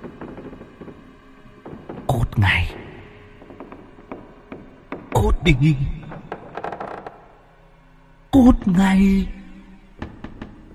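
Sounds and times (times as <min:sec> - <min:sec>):
wooden bed joints creaking and groaning as the bed shakes violently: 0:00.0 - 0:07.5, 0:10.0 - 0:10.7
speech: 0:02.4 - 0:02.8, 0:05.2 - 0:06.0, 0:08.4 - 0:09.4.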